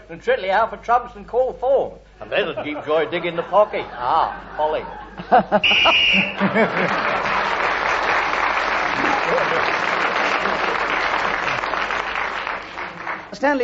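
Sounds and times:
speech: 0.1s - 7.2s, 13.4s - 13.6s
laughter: 2.3s - 12.2s
game show whistle ending the round: 5.6s - 6.5s.

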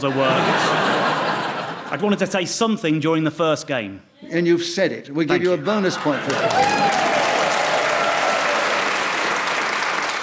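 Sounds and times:
speech: 0.0s - 1.0s, 1.9s - 7.2s
laughter: 0.0s - 2.3s, 5.3s - 7.9s
studio audience applause: 5.9s - 10.2s.

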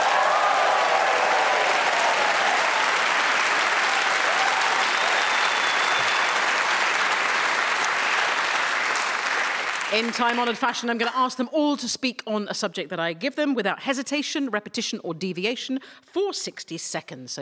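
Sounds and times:
studio audience cheering and applauding: 0.0s - 10.6s
speech: 9.9s - 17.3s.

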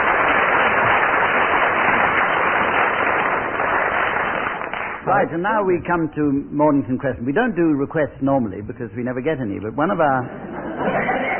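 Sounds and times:
audience applause: 0.0s - 5.1s
speech: 5.1s - 11.2s
laughter: 10.2s - 11.3s.

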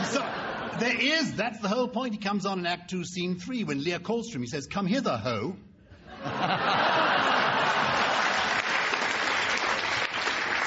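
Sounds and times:
people chuckling: 0.0s - 0.9s, 6.0s - 8.6s
speech: 0.8s - 6.9s
crowd applause: 6.6s - 10.6s.

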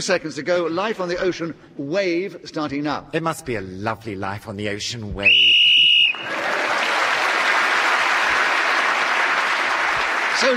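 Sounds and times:
speech: 0.0s - 6.6s, 10.4s - 10.5s
shrill whistle blown to end the round: 5.2s - 6.3s
audience applause: 5.9s - 10.5s.

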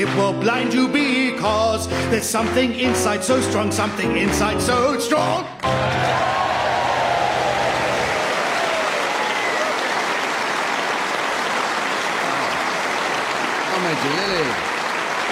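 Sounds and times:
audience clapping: 0.0s - 1.2s, 5.6s - 15.3s
speech: 0.0s - 6.6s, 13.9s - 14.7s.

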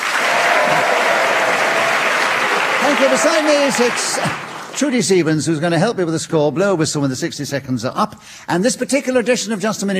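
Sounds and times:
theatre audience applauding panellists of Just a Minute: 0.0s - 5.3s
speech: 3.0s - 9.9s.

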